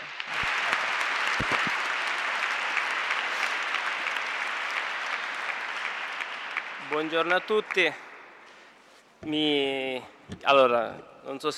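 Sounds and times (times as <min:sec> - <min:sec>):
audience applause: 0:00.0 - 0:08.1
speech: 0:06.9 - 0:08.0, 0:09.2 - 0:11.5.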